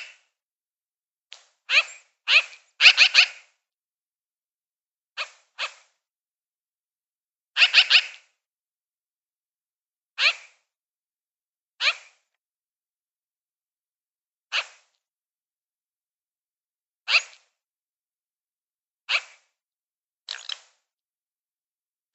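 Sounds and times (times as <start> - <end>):
magpie chirps: 1.7 - 3.5, 7.6 - 8.3, 10.2 - 10.6, 11.8 - 12.2, 17.1 - 17.5.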